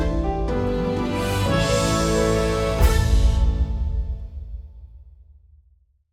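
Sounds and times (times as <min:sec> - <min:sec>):
skill fanfare: 0:00.2 - 0:04.2.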